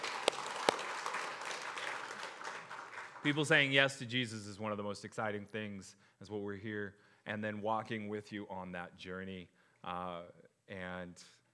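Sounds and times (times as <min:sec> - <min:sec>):
audience clapping: 0:00.0 - 0:03.7
speech: 0:03.2 - 0:11.4.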